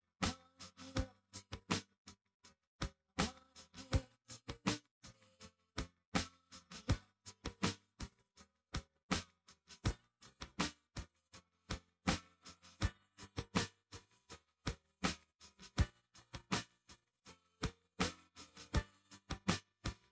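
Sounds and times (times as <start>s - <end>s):
drums: 0.2s - 1.9s, 2.8s - 5.2s, 5.8s - 8.2s, 8.8s - 11.1s, 11.7s - 17.0s, 17.6s - 20.1s.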